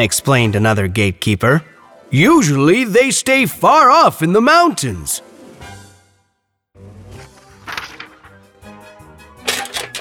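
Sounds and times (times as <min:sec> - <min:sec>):
speech: 0:00.0 - 0:05.3
knights' metal armor clanking and rattling: 0:09.4 - 0:09.9.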